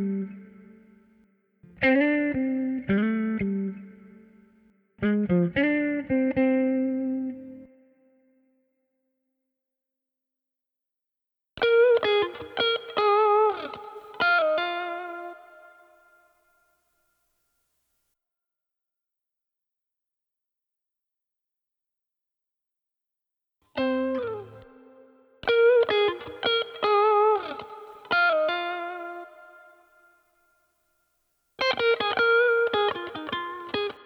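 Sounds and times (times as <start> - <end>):
guitar riffs: 0.0 - 0.8, 1.6 - 4.4, 5.0 - 7.8, 11.6 - 16.1, 23.8 - 29.9, 31.6 - 34.0.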